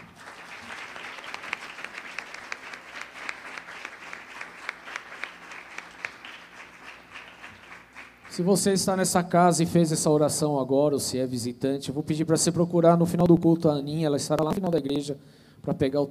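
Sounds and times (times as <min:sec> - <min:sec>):
large gathering applauding in a reverberant room: 0:00.0 - 0:08.8
speech: 0:08.4 - 0:16.0.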